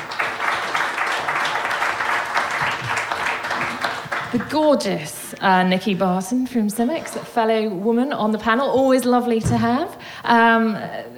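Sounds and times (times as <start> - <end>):
audience applause: 0.0 - 4.6
speech: 4.3 - 11.1.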